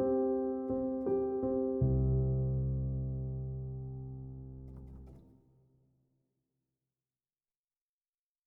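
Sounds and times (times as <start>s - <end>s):
calm happy piano solo: 0.0s - 5.2s.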